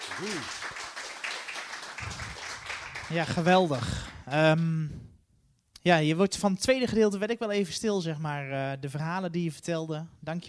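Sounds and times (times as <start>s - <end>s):
audience applause: 0.0s - 4.2s
speech: 0.2s - 0.7s, 3.1s - 5.0s, 5.8s - 10.4s.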